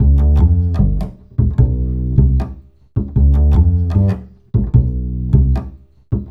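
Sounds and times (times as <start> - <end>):
acoustic bass: 0.0 - 6.2.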